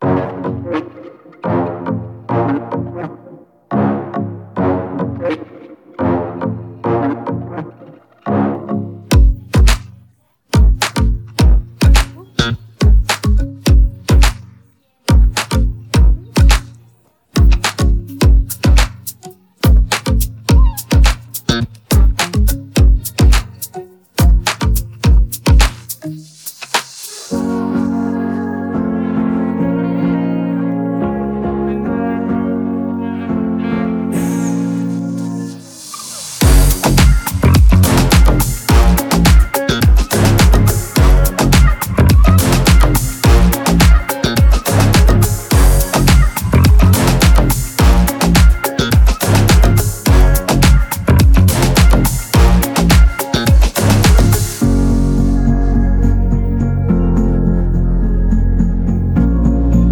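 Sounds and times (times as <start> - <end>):
instrumental music: 0.0 - 59.8.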